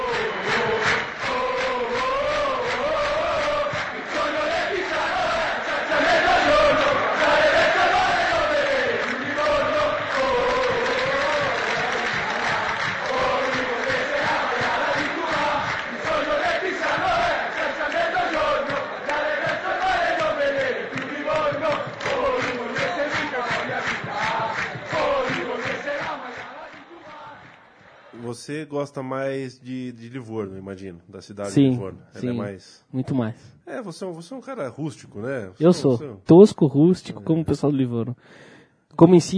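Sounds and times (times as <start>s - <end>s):
Pisa football supporters chanting in stadium: 0.0s - 28.2s
speech: 28.7s - 39.3s.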